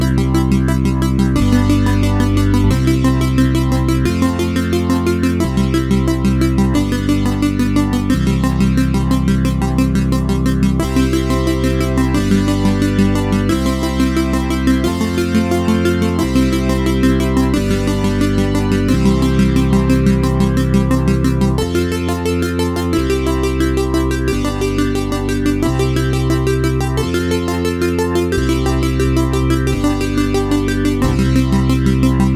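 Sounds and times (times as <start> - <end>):
classy 8-bit looping music: 0.0 - 32.3.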